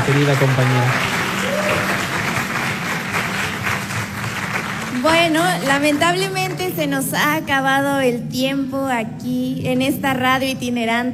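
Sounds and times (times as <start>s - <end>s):
audience applause: 0.0s - 6.8s
speech: 0.1s - 1.2s, 5.0s - 11.1s.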